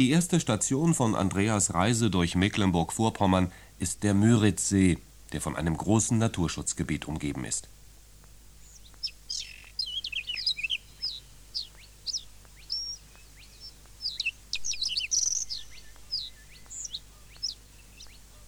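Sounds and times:
speech: 0.0s - 7.8s
rare birds singing in nature reserve: 0.0s - 18.4s.

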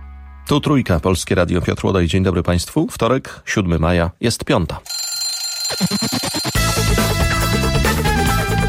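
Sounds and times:
speech: 0.5s - 5.0s, 5.7s - 8.6s
alarm clock ringing during a radio morning broadcast: 4.8s - 7.2s.

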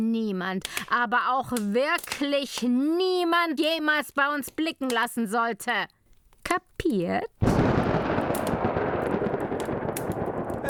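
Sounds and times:
speech: 0.0s - 7.6s
thunder rumbling and cracking in a storm: 7.4s - 10.6s.

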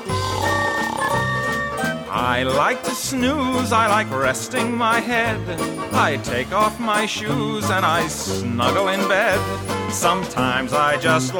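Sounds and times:
voice imitating loud snoring: 0.1s - 1.4s
speech: 2.2s - 11.3s.

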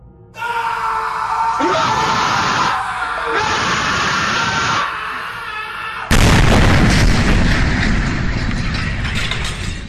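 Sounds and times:
terrified bus passengers screaming: 0.4s - 6.2s
loud explosion of overloaded equipment: 6.1s - 9.1s.

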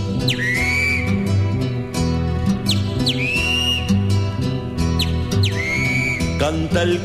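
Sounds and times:
steady instrumental music: 0.0s - 7.0s
great kiskadee calling: 0.2s - 1.2s, 2.7s - 3.9s, 5.0s - 6.4s.

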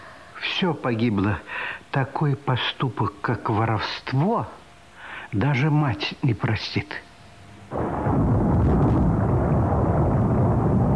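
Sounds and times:
speech: 0.6s - 4.6s, 5.3s - 7.1s, 7.7s - 8.3s
thunder of a thunderstorm: 7.7s - 10.9s.

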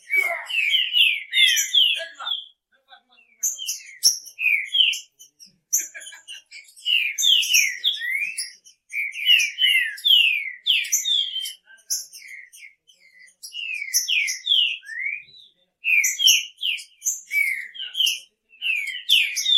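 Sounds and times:
Green-winged Saltator song of clear slurred whistles and sharper high notes: 0.0s - 2.6s, 3.6s - 5.2s, 6.4s - 19.5s
laughter: 5.7s - 6.8s.

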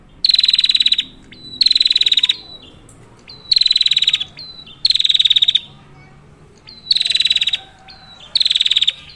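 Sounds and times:
prinia buzzy high-pitched rattling calls: 0.0s - 9.1s.

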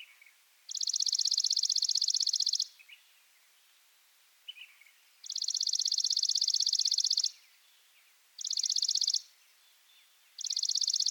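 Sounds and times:
Chipping sparrow Spizella passerina arizonae singing trills of high chips: 0.0s - 3.0s, 4.5s - 11.0s.

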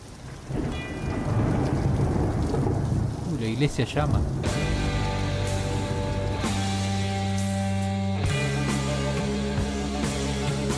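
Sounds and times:
deep low rumble of thunder: 0.0s - 7.5s
steady rain falling in a thunderstorm: 0.0s - 10.7s
speech: 3.5s - 4.6s.

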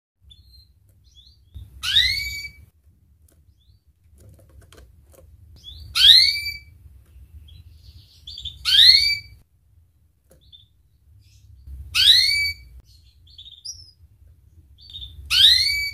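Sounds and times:
Atlantic canary singing vigorously with rapid trills and chattering tours: 0.2s - 2.6s, 5.6s - 6.7s, 7.4s - 9.4s, 10.4s - 14.0s, 14.8s - 15.9s.

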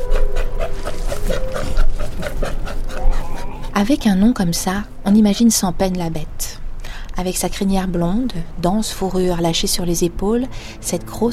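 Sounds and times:
Australian sea lion calling: 0.0s - 4.0s
speech: 3.8s - 6.6s, 7.2s - 11.3s.

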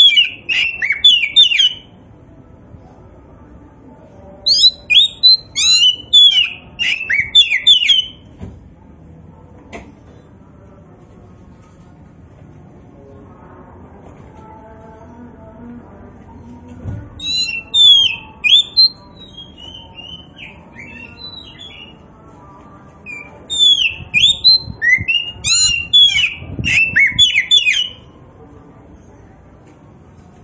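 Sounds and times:
Oriental magpie-robin singing slurred whistles: 0.0s - 1.9s, 4.5s - 8.2s, 17.2s - 22.0s, 23.1s - 28.0s.

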